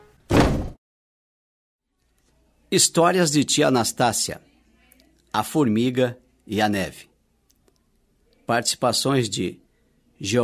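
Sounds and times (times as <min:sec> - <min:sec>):
fist punching a table: 0:00.3 - 0:00.8
speech: 0:02.7 - 0:04.5, 0:05.3 - 0:07.1, 0:08.5 - 0:09.6, 0:10.2 - 0:10.4.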